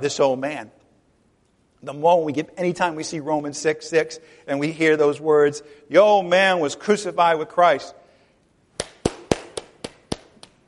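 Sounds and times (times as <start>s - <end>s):
speech: 0.0s - 0.8s, 1.8s - 8.0s
applause: 8.8s - 10.6s.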